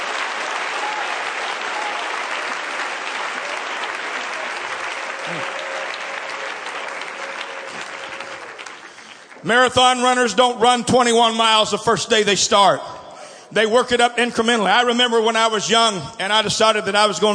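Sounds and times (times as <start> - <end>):
crowd clapping: 0.0 - 10.3
speech: 9.4 - 17.3.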